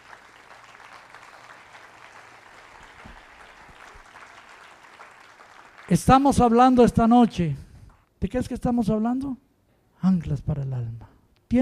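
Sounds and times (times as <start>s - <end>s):
audience applause: 0.0s - 6.4s
speech: 5.9s - 7.6s, 8.2s - 9.4s, 10.0s - 11.6s.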